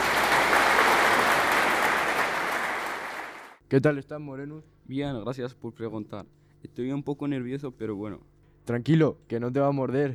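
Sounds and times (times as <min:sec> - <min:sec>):
audience applause: 0:00.0 - 0:03.6
speech: 0:03.7 - 0:10.1.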